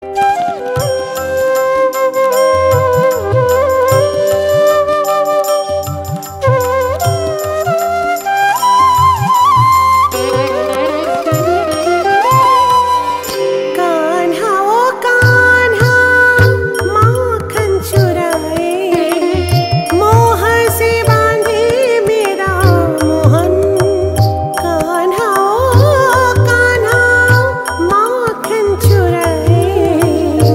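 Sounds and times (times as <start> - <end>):
bhajan devotional song: 0.0 - 30.5.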